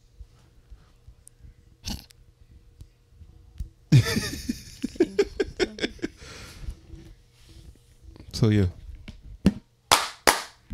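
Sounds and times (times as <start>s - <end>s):
laughter: 3.9s - 6.2s
speech: 8.4s - 8.8s
hand clap to sync audio: 9.9s - 10.7s.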